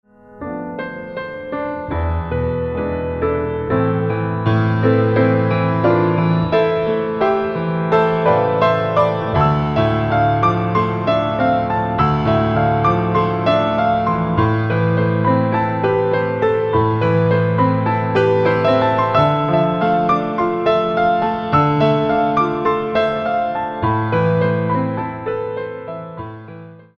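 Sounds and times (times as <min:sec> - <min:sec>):
concerto for solo piano: 0:00.0 - 0:26.9.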